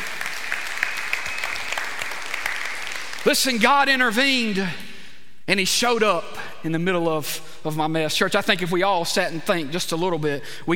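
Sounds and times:
audience applauding: 0:00.0 - 0:03.6
speech: 0:03.2 - 0:04.8, 0:05.5 - 0:10.7.

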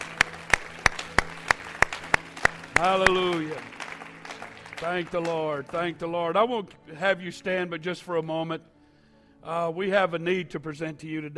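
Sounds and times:
audience clapping hands: 0:00.0 - 0:06.0
speech: 0:02.8 - 0:03.7, 0:04.8 - 0:08.7, 0:09.4 - 0:11.3.

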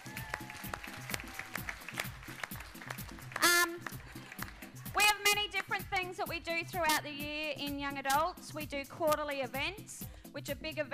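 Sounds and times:
shrill whoop: 0:00.0 - 0:01.6
audience clapping: 0:00.0 - 0:06.1
speech: 0:06.1 - 0:10.9.

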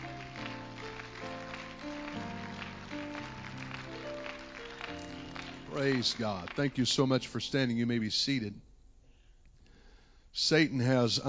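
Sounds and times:
audience clapping along: 0:00.0 - 0:07.5
sustained keyboard or organ chords: 0:00.0 - 0:08.0
speech: 0:05.8 - 0:08.7, 0:10.4 - 0:11.2.

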